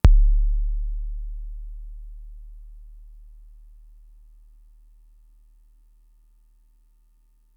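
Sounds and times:
Fricke MFB-522 kick drum: 0:00.0 - 0:03.6.

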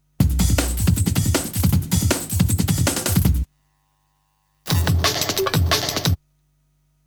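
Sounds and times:
breakbeat drums: 0:00.2 - 0:03.4, 0:04.7 - 0:06.2.

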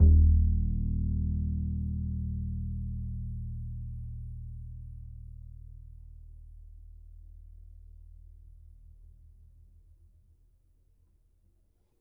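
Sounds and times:
upright acoustic bass in E: 0:00.0 - 0:07.6.

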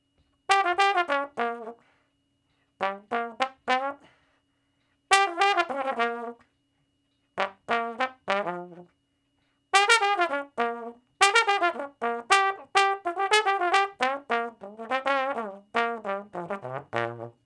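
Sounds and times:
trombone shuffle in B flat: 0:00.5 - 0:01.8, 0:02.8 - 0:04.1, 0:05.1 - 0:06.4, 0:07.4 - 0:08.9, 0:09.7 - 0:17.4.

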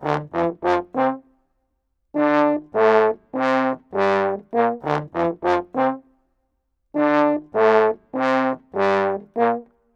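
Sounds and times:
brass in D minor: 0:00.0 - 0:01.4, 0:02.1 - 0:06.2, 0:06.9 - 0:09.9.

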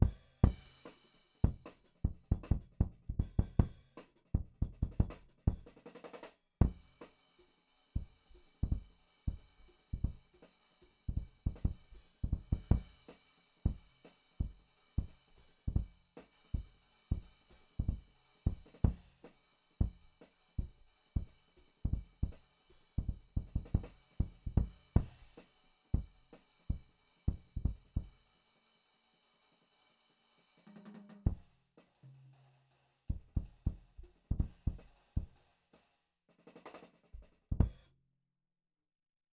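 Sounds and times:
punchy kick drum in drum and bass jazz jungle beats: 0:00.0 - 0:00.8, 0:01.4 - 0:03.8, 0:04.4 - 0:05.7, 0:06.6 - 0:07.0, 0:08.0 - 0:10.2, 0:11.1 - 0:13.0, 0:13.7 - 0:15.1, 0:15.7 - 0:16.0, 0:16.6 - 0:19.1, 0:21.9 - 0:22.4, 0:23.0 - 0:25.3, 0:26.7 - 0:28.1, 0:31.3 - 0:31.5, 0:33.1 - 0:35.4, 0:37.5 - 0:37.8
drum and bass jazz jungle beat: 0:00.0 - 0:28.2, 0:30.7 - 0:31.5, 0:33.1 - 0:35.4, 0:37.5 - 0:37.8.

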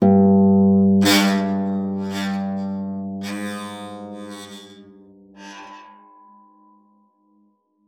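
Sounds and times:
harp note: 0:01.0 - 0:05.7.

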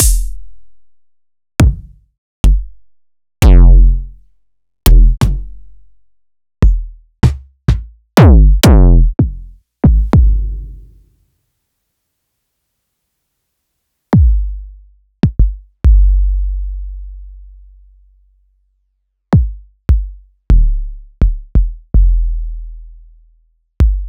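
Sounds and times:
kick drums: 0:00.0 - 0:00.4, 0:01.6 - 0:02.7, 0:03.4 - 0:04.0, 0:04.9 - 0:05.5, 0:06.6 - 0:10.7, 0:14.2 - 0:14.5, 0:15.2 - 0:16.1, 0:19.4 - 0:22.1, 0:23.8 - 0:24.0.

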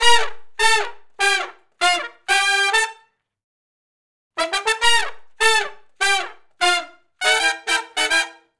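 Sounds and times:
horn section funk riff in C in unison and harmony: 0:00.0 - 0:02.9, 0:04.4 - 0:08.4.

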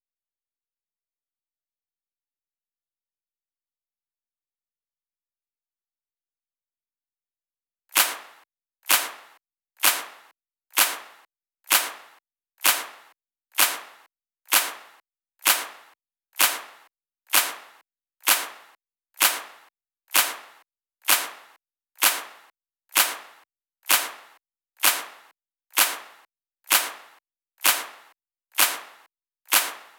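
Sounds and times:
128 BPM dry clap: 0:08.0 - 0:29.9.

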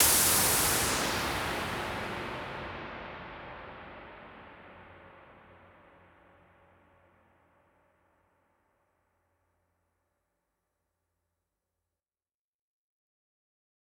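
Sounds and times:
reverberant noise decays: 0:00.0 - 0:03.0.

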